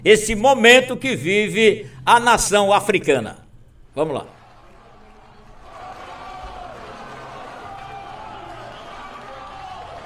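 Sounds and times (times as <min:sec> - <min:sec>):
speech: 0:00.0 - 0:03.4, 0:04.0 - 0:04.4
people clapping hands: 0:04.3 - 0:10.0.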